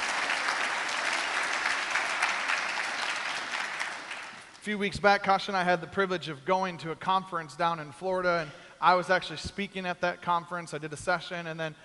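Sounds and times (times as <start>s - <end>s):
audience applause: 0.0s - 4.6s
speech: 4.6s - 11.8s.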